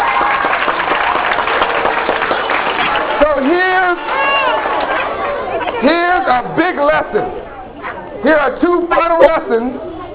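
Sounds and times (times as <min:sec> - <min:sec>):
audience applause: 0:00.0 - 0:05.3
speech: 0:05.8 - 0:07.4, 0:08.2 - 0:09.9.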